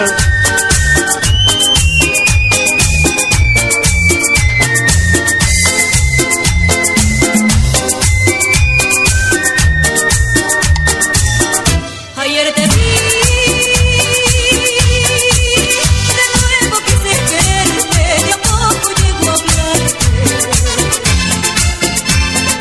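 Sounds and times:
man whistling a melody: 0.0 - 11.1
loud dance music with thumping beat and percussion: 0.0 - 11.9, 12.6 - 22.6.

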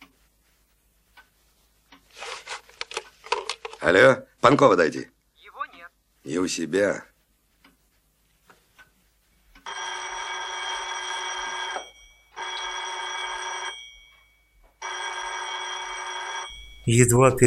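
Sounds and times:
speech: 3.8 - 5.1, 6.3 - 7.1, 16.9 - 17.4
telephone bell ringing: 9.6 - 17.0.

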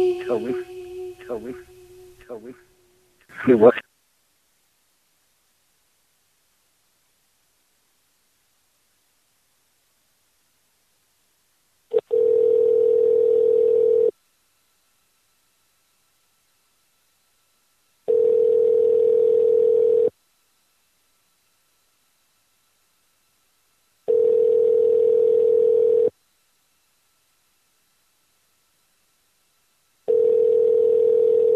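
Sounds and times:
speech: 0.0 - 0.7, 1.3 - 1.7, 2.3 - 2.7, 3.3 - 3.9
telephone ringing tone while a call is being placed: 11.9 - 14.1, 18.1 - 20.1, 24.1 - 26.1, 30.1 - 31.5.

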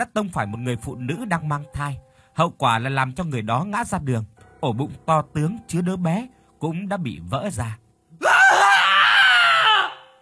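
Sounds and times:
speech: 0.0 - 8.3
man screaming in horror: 8.2 - 10.1.

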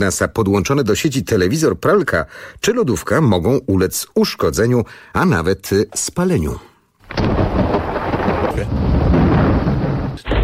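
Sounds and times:
speech: 0.0 - 7.4
thunder from a lightning strike: 7.1 - 10.4.

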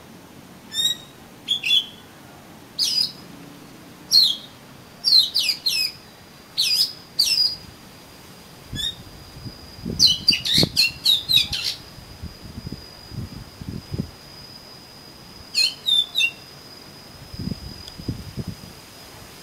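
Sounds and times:
thin steady high tone: 0.0 - 19.4
Oriental magpie-robin singing whistled notes: 0.7 - 2.1, 2.8 - 7.7, 8.7 - 18.4.

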